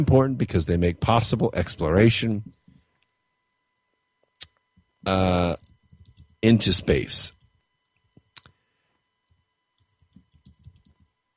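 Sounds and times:
speech: 0.0 - 2.6, 5.0 - 5.6, 6.4 - 7.4
typing on a computer keyboard: 5.6 - 6.4, 10.0 - 11.1.

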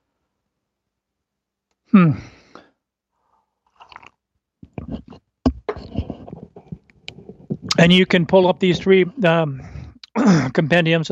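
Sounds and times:
speech: 1.9 - 2.4, 7.8 - 11.1
person gulping and swallowing water: 3.7 - 5.2, 5.8 - 7.9.

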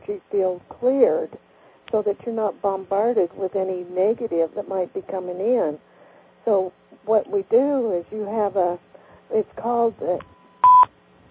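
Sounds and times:
speech: 0.1 - 10.3
electronic telephone beep signalling an incoming caller: 10.3 - 10.9.

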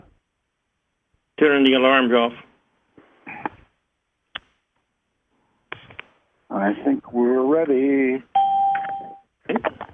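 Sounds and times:
speech: 1.4 - 2.5, 6.6 - 8.4
electronic ding chime as caller joins: 8.4 - 9.2.

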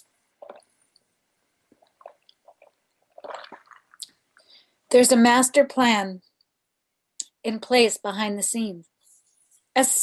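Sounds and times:
person sipping a drink: 0.0 - 1.0, 1.7 - 4.6
speech: 4.9 - 6.3, 7.4 - 8.9, 9.8 - 10.0.

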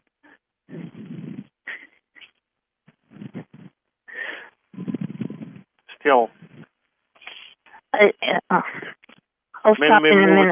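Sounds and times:
breathing into the microphone: 0.7 - 2.3, 3.0 - 5.7, 6.3 - 7.8
speech: 6.0 - 6.4, 8.0 - 8.9, 9.6 - 10.4.

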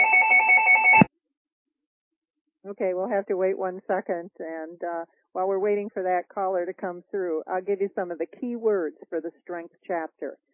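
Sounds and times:
telephone ringing on a call-in show: 0.0 - 1.1
speech: 2.7 - 10.5.

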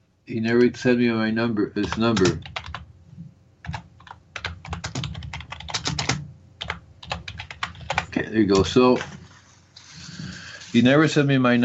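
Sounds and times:
speech: 0.3 - 2.6, 8.3 - 9.2, 10.8 - 11.6
typing on a keyboard: 1.8 - 2.8, 3.6 - 8.1.

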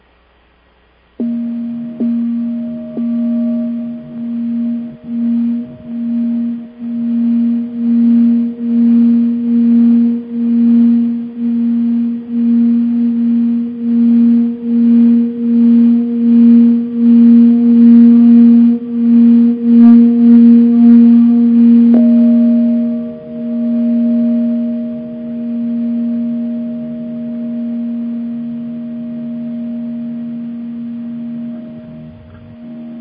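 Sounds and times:
singing bowl ringing with phasing oscillation: 1.2 - 32.9.

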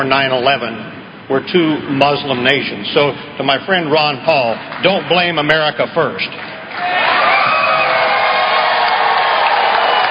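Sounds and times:
speech: 0.0 - 7.1
large crowd booing: 6.8 - 10.0.

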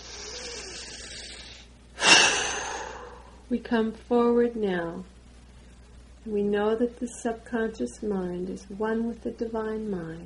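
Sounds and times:
deep breath taken during a guided meditation: 0.0 - 3.5
speech: 3.5 - 5.1, 6.3 - 10.2.

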